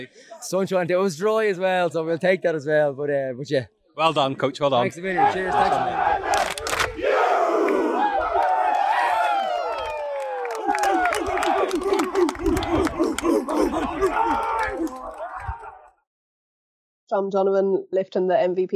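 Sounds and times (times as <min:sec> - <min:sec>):
speech: 0:00.0 - 0:06.2, 0:17.1 - 0:18.7
crowd cheering at award presentation: 0:05.1 - 0:16.0
scattered claps: 0:06.2 - 0:07.0, 0:07.6 - 0:15.7.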